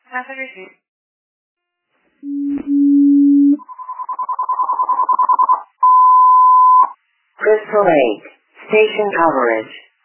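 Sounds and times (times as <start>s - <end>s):
speech: 0.2s - 0.8s, 2.2s - 3.3s, 7.4s - 9.8s
fire department dispatch alert tones: 2.2s - 6.9s.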